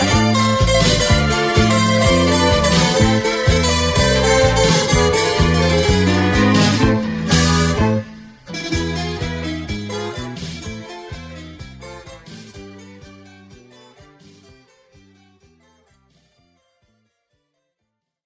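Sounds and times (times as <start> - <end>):
guitar playing tango: 0.0 - 16.8.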